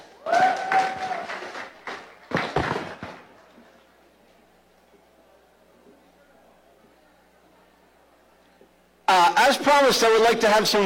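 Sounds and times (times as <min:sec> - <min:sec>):
audience applause at a Nerd Nite live event: 0:00.2 - 0:03.3
speech: 0:09.5 - 0:10.8.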